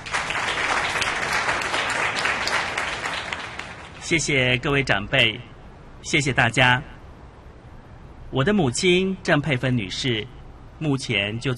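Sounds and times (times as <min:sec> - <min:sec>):
audience applause: 0:00.0 - 0:04.0
speech: 0:04.1 - 0:06.9, 0:08.3 - 0:11.5.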